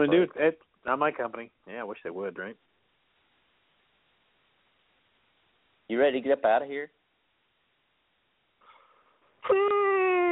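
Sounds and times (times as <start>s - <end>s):
speech: 0.0s - 2.8s, 5.9s - 7.0s, 9.4s - 9.8s
person yawning: 9.4s - 10.3s.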